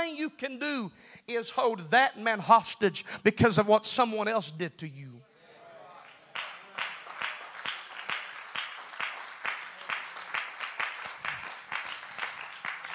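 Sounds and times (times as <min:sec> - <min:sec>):
speech: 0:00.2 - 0:05.3
a handful of people clapping: 0:06.0 - 0:12.9.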